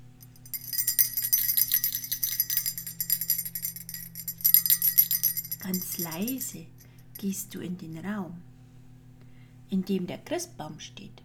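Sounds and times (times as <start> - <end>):
small bell ringing: 0.1 - 7.3
speech: 5.7 - 8.5, 9.7 - 11.2.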